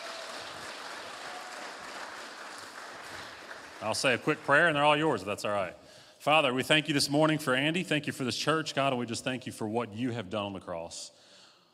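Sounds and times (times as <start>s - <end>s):
audience applause: 0.0s - 4.9s
speech: 3.8s - 11.2s.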